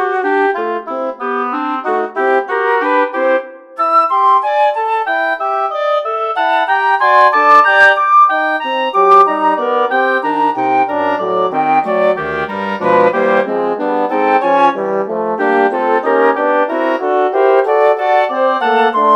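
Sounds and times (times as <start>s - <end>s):
wind quintet playing: 0.0s - 19.1s.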